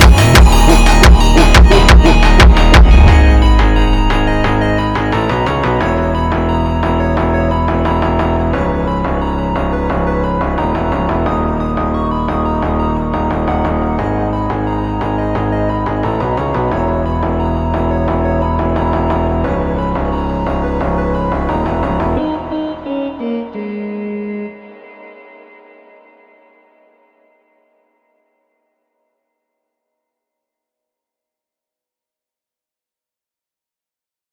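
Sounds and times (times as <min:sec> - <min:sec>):
funk Christmas music: 0:00.0 - 0:24.4.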